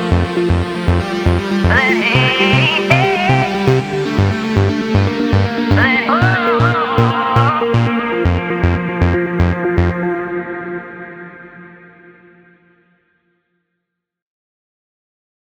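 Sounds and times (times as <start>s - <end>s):
trance music: 0.0s - 11.6s.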